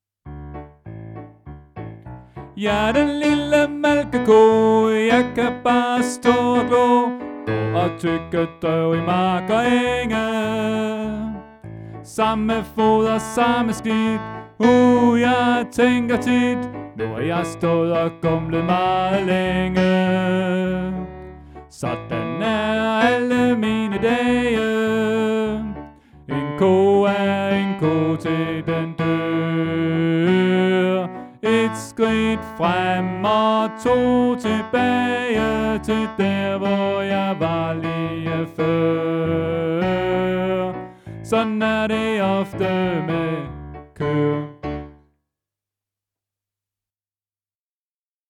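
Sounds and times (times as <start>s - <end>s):
tenor singing: 2.5s - 44.6s.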